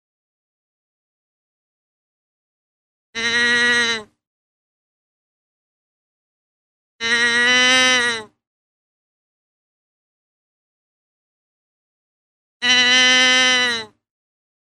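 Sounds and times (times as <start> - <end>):
deer bleating: 3.2 - 4.1, 7.0 - 8.3, 12.6 - 14.0.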